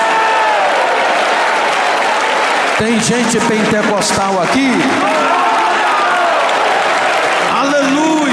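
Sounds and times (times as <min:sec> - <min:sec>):
audience clapping and cheering: 0:00.0 - 0:08.3
speech: 0:02.8 - 0:05.5.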